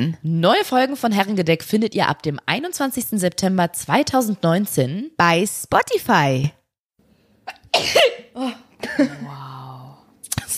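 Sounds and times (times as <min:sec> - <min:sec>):
speech: 0:00.0 - 0:06.6, 0:07.8 - 0:09.5
person sneezing: 0:07.5 - 0:09.6.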